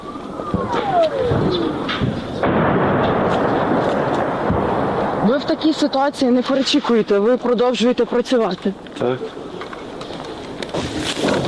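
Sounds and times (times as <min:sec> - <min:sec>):
Grad multiple rocket launcher fire: 0:00.4 - 0:05.7
speech: 0:00.6 - 0:02.2, 0:05.3 - 0:09.5.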